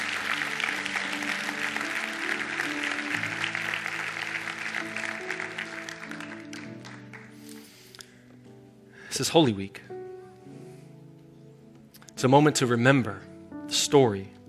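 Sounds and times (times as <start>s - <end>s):
audience applause: 0.0s - 7.6s
speech: 9.2s - 9.9s, 12.2s - 13.3s, 13.9s - 14.4s.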